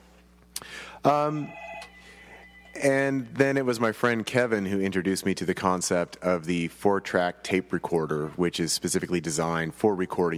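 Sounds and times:
faint steady hum: 0.0 - 10.3
speech: 1.0 - 1.6, 2.8 - 10.3
telephone ringing during a live radio talk show: 1.2 - 3.4.

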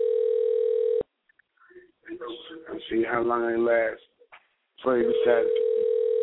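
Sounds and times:
unanswered phone electronic tone going to voicemail: 0.0 - 1.0, 5.2 - 6.2
speech: 2.8 - 4.1, 4.8 - 5.6.

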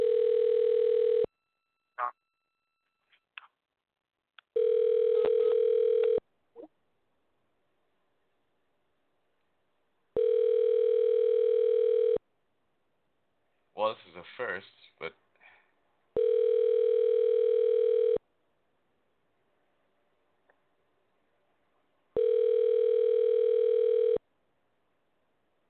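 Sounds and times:
telephone ringback tone: 0.0 - 1.3, 4.6 - 6.2, 10.2 - 12.2, 16.2 - 18.2, 22.2 - 24.2
speech: 14.2 - 15.2.

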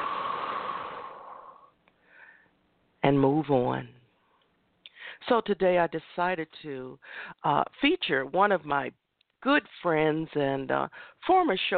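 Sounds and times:
deep breathing during a relaxation exercise: 0.0 - 2.6, 7.0 - 7.4
speech: 3.1 - 4.0, 5.2 - 11.7.

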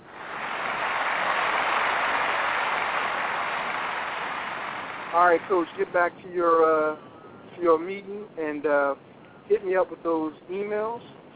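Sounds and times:
round of applause: 0.0 - 5.8
speech: 5.2 - 11.3.

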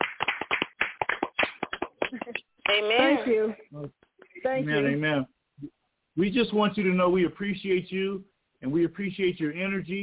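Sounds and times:
hands clapping: 0.0 - 3.2
speech: 2.7 - 5.3, 6.2 - 10.0.

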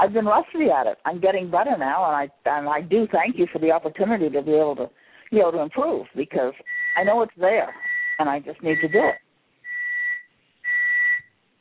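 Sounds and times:
speech: 0.0 - 9.2
bird tweeting: 6.6 - 7.2, 7.8 - 11.3.

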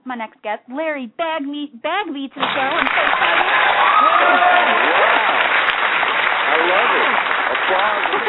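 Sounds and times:
speech: 0.1 - 5.3, 6.5 - 8.2
studio audience applause: 2.4 - 8.2.

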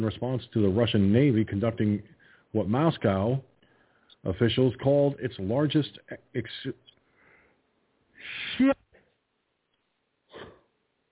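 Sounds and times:
speech: 0.0 - 3.5, 4.2 - 6.8, 8.2 - 8.8
breathy yawn: 8.2 - 8.8.

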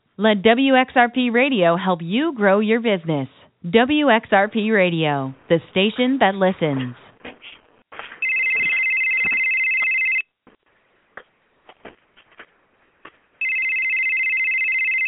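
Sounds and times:
speech: 0.2 - 7.0
telephone ringing: 8.2 - 10.3, 13.4 - 15.0.

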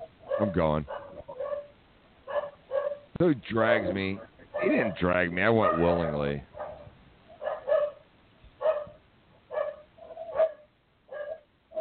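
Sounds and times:
dogs barking: 0.0 - 3.1, 3.7 - 11.8
speech: 0.4 - 1.0, 3.2 - 6.5.

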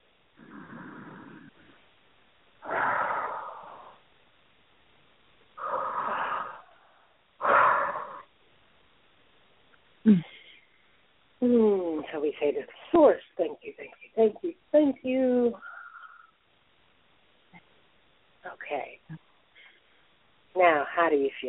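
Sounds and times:
deep breathing during a guided healing meditation: 0.4 - 1.9, 2.6 - 4.1, 5.6 - 8.3, 15.6 - 16.4
speech: 10.1 - 10.3, 11.4 - 15.7, 18.6 - 19.2, 20.6 - 21.4.

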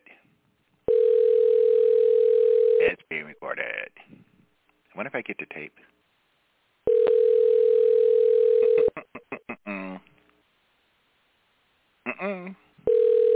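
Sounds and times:
telephone ringback tone on an outgoing call: 0.9 - 2.8, 6.9 - 8.9, 12.9 - 13.3
speech: 5.0 - 6.0.

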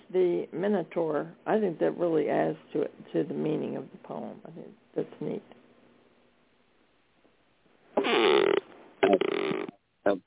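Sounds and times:
speech: 0.1 - 5.6, 10.0 - 10.2
leather chair creaking: 8.0 - 9.8.

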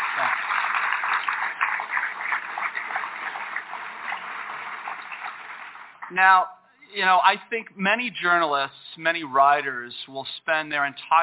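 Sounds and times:
audience applause: 0.0 - 6.1
speech: 6.1 - 11.2.

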